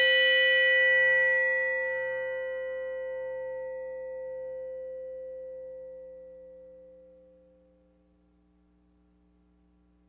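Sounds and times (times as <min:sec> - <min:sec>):
bell: 0:00.0 - 0:07.9.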